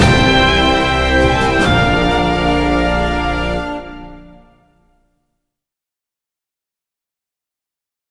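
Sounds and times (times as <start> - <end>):
promotional video background music: 0.0 - 5.2.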